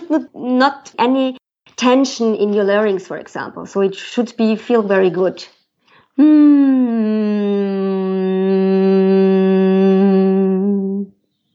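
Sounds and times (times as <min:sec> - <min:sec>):
speech: 0:00.1 - 0:05.6, 0:06.2 - 0:09.1
person humming from high to low pitch: 0:06.2 - 0:11.2.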